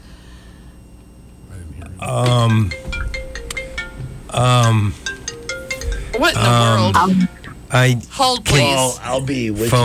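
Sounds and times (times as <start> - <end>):
faint steady hum: 0.0 - 9.8
speech: 2.0 - 2.9, 4.3 - 5.2, 6.2 - 9.8
pay phone ringing: 2.2 - 7.5.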